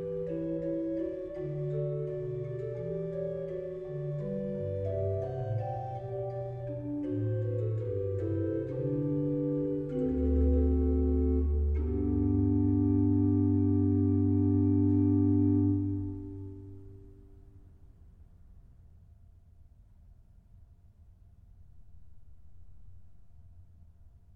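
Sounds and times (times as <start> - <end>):
organ playing a fugue in G major: 0.0 - 17.0.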